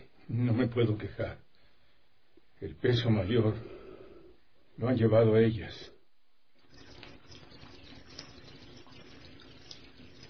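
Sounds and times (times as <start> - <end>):
speech: 0.3 - 1.5, 2.6 - 3.8, 4.8 - 5.9
bucket filling with foul water from a half-blocked tap: 6.6 - 10.2.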